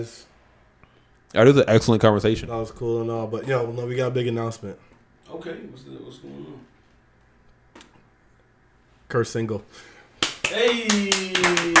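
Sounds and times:
speech: 0:00.0 - 0:00.3, 0:01.3 - 0:06.7, 0:09.1 - 0:09.9, 0:10.5 - 0:11.7
hand clapping: 0:10.2 - 0:11.7.

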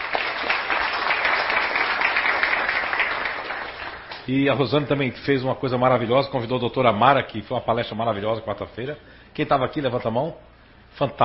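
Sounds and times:
applause: 0:00.0 - 0:04.2
speech: 0:04.3 - 0:11.2.

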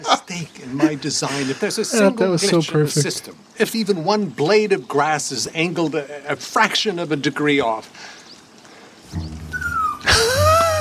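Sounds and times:
laughter: 0:00.0 - 0:02.2, 0:10.0 - 0:10.8
speech: 0:00.0 - 0:08.2
dog whining: 0:09.5 - 0:10.8.

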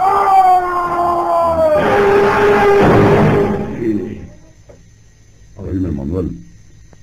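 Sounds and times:
distant scream: 0:00.0 - 0:04.6.

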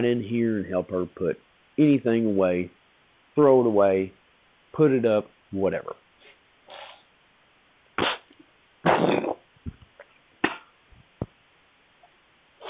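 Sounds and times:
speech: 0:00.0 - 0:02.8, 0:03.4 - 0:06.0
sneeze: 0:06.7 - 0:07.1, 0:08.0 - 0:09.4, 0:10.4 - 0:10.7.

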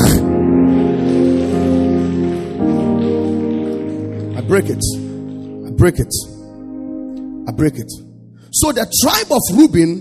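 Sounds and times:
audience clapping: 0:00.0 - 0:07.3
sustained musical tones: 0:00.0 - 0:09.0
speech: 0:04.5 - 0:05.0, 0:05.8 - 0:06.4, 0:07.5 - 0:09.9.

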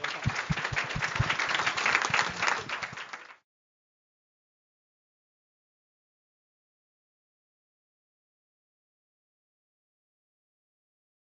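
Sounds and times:
audience applause for panelists: 0:00.0 - 0:03.4.

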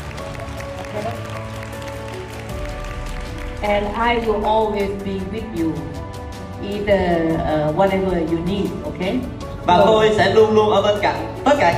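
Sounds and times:
audience applause: 0:00.0 - 0:04.4
music: 0:00.0 - 0:11.7
speech: 0:03.6 - 0:06.0, 0:06.6 - 0:11.7.

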